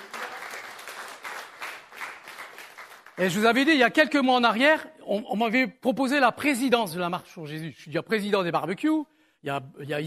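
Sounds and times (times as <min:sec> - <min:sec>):
audience applauding: 0:00.0 - 0:03.7
speech: 0:03.2 - 0:10.0.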